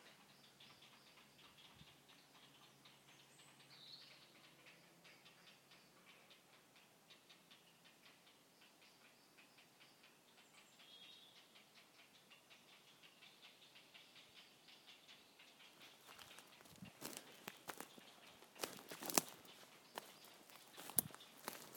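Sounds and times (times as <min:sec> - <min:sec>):
chicks in trees: 0:00.0 - 0:21.7.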